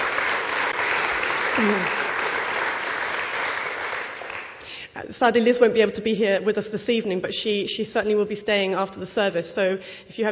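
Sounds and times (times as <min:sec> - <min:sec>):
audience applause: 0:00.0 - 0:04.6
speech: 0:01.6 - 0:02.1, 0:05.0 - 0:10.2.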